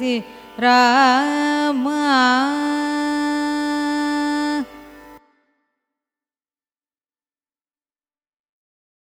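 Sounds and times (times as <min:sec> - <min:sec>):
carnatic raga music: 0:00.0 - 0:05.7.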